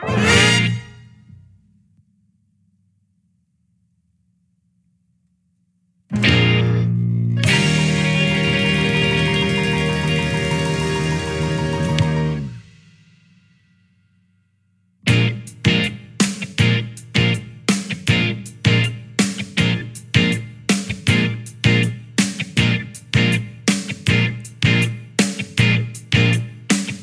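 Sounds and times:
backing track: 0.0s - 1.4s, 6.1s - 13.0s, 15.0s - 27.0s.

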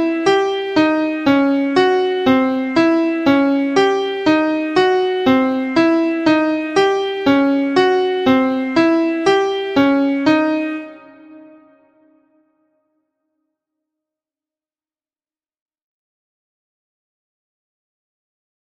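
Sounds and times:
closed position chord in C: 0.0s - 12.1s.

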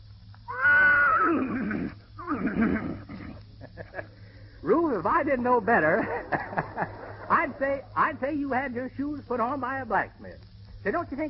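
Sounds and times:
voice imitating a horse neighing with whinny and sputtering snorts: 0.5s - 3.4s
laughter: 3.6s - 4.2s, 5.6s - 8.5s
speech: 4.6s - 6.9s, 7.5s - 11.2s.

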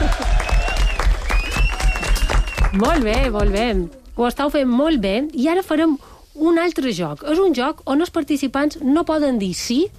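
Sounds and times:
loud audience applause: 0.0s - 3.2s
speech: 2.8s - 9.9s.

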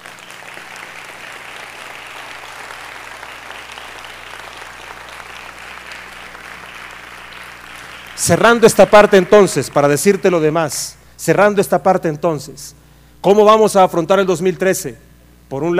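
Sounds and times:
audience applause: 0.0s - 10.4s
speech: 8.2s - 15.7s.

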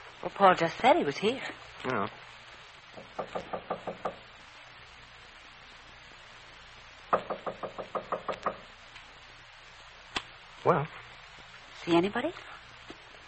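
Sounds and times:
speech: 0.2s - 2.4s, 3.0s - 4.1s, 10.6s - 11.0s, 11.9s - 12.5s
knocking on a door: 2.9s - 4.2s, 7.1s - 8.7s.

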